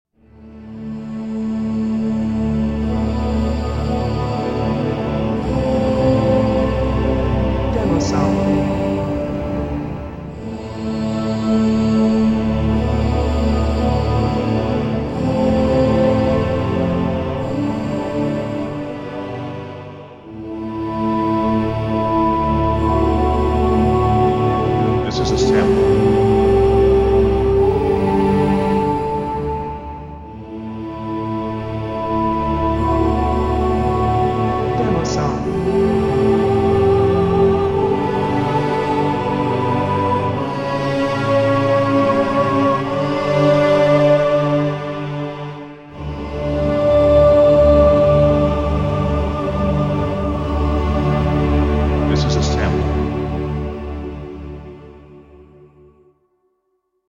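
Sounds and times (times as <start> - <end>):
emotional choir music: 0.2 - 56.2.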